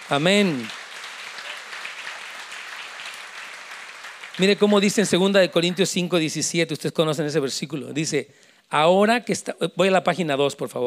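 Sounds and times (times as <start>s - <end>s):
audience applauding: 0.0s - 6.2s
speech: 0.1s - 0.8s, 4.4s - 10.8s.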